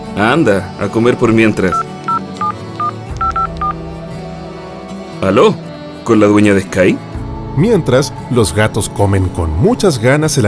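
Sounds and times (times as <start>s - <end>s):
speech: 0.2s - 1.9s, 5.2s - 10.4s
telephone touch-tone dialing beeps: 1.7s - 3.8s.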